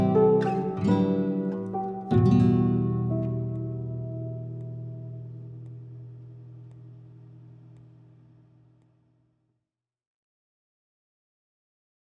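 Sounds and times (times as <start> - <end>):
lonesome piano and guitar music: 0.0 - 7.6.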